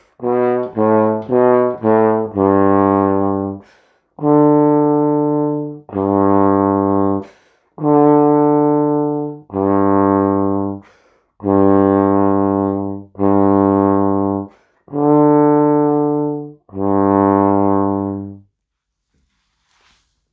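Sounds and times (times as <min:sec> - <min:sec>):
trombone waltz guide track: 0:00.0 - 0:03.6, 0:04.2 - 0:10.8, 0:11.4 - 0:18.4.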